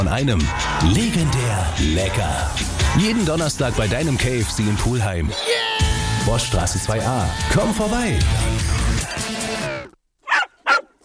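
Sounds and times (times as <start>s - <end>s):
speech: 0.0s - 5.7s, 6.3s - 8.7s
music in a radio advert: 0.0s - 9.8s
dog barking in a pet insurance radio advert: 10.2s - 11.0s.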